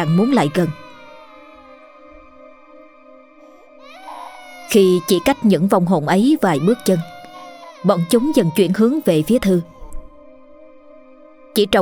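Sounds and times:
speech: 0.0s - 0.8s, 4.7s - 7.2s, 7.8s - 9.7s, 11.6s - 11.8s
eerie infant wailing: 0.0s - 2.7s, 3.6s - 10.0s.

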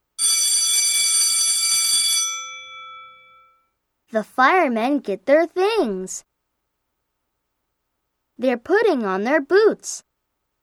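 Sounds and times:
electric fire alarm bell ringing: 0.2s - 3.7s
speech: 4.1s - 6.3s, 8.4s - 10.1s.

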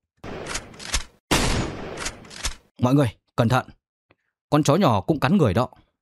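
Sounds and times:
gunshot: 1.3s - 2.4s
speech: 2.8s - 3.8s, 4.5s - 5.8s.

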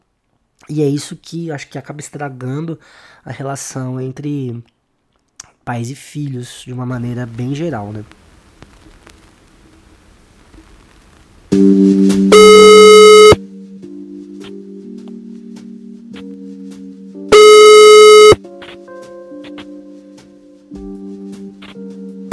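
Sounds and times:
speech: 0.6s - 4.8s, 5.6s - 8.2s, 11.6s - 12.6s
phone call ringing tone before voicemail: 12.3s - 13.4s, 17.3s - 18.4s.

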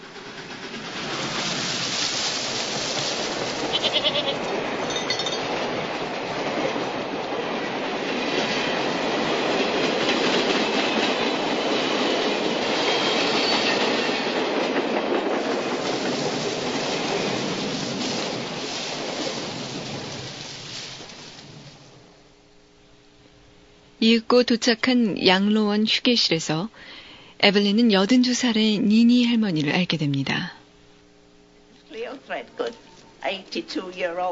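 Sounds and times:
train passing on railway tracks scattering fallen leaves: 0.0s - 31.3s, 32.0s - 34.2s
speech: 24.1s - 30.6s, 32.3s - 34.2s.

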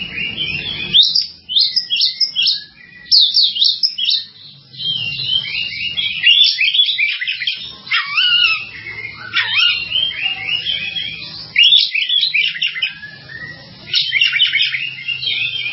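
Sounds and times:
bird song: 0.0s - 15.7s.

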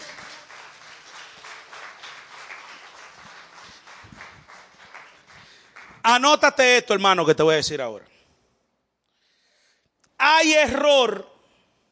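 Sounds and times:
audience applause: 0.0s - 6.0s
speech: 6.0s - 8.1s, 10.4s - 11.3s.

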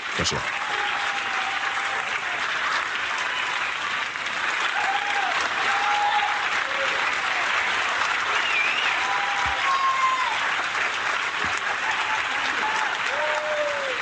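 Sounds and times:
applause for a podcast host: 0.0s - 13.9s.

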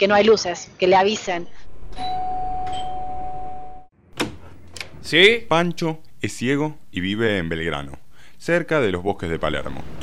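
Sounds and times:
speech: 0.0s - 2.3s, 5.0s - 10.0s
doorbell chime: 1.9s - 3.8s.

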